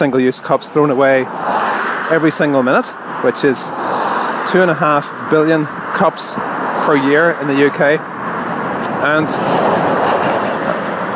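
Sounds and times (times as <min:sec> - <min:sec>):
speech: 0:00.0 - 0:08.2, 0:09.0 - 0:10.0
traffic on a busy road: 0:00.0 - 0:11.1.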